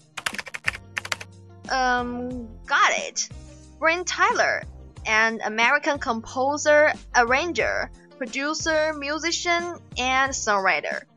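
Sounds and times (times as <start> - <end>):
typing on a computer keyboard: 0.0 - 1.3
speech: 1.7 - 11.1.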